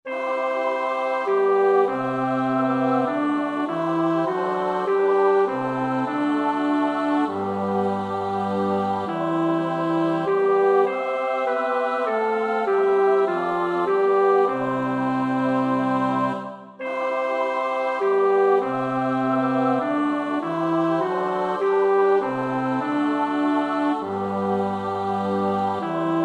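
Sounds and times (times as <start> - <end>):
bass choir part practice: 0.4 - 26.2.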